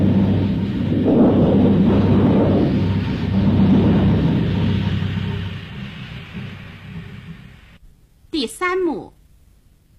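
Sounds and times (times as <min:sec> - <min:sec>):
thunder: 0:00.0 - 0:07.8.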